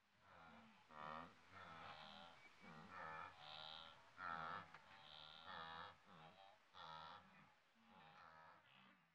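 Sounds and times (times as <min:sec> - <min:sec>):
wildebeest: 0:00.3 - 0:09.0.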